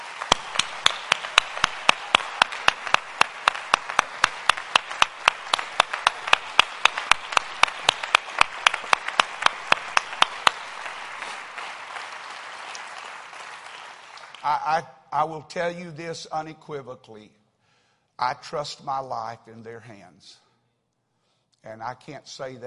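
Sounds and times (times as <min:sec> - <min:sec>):
audience rhythmic clapping: 0:00.0 - 0:14.8
speech: 0:14.6 - 0:17.4, 0:18.2 - 0:20.4, 0:21.6 - 0:22.6.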